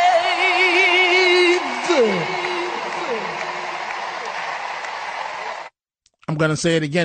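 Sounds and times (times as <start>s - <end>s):
crowd applauding after a played speech: 0.2s - 5.8s
speech: 6.4s - 7.0s.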